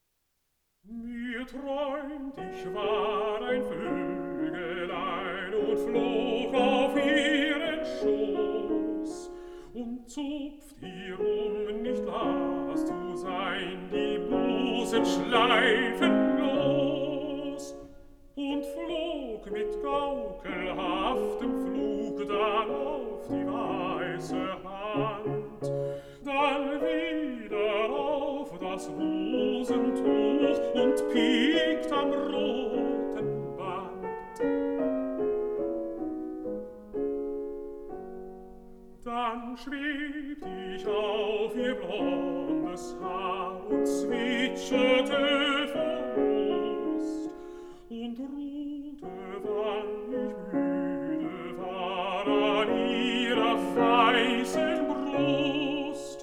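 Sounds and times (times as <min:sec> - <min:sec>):
piano: 0:00.0 - 0:56.2
person singing: 0:00.9 - 0:35.3, 0:39.0 - 0:56.2.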